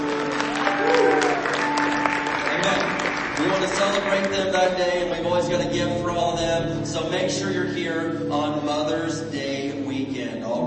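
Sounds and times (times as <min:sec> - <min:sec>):
audience applause: 0:00.0 - 0:05.0
speech: 0:04.2 - 0:09.6.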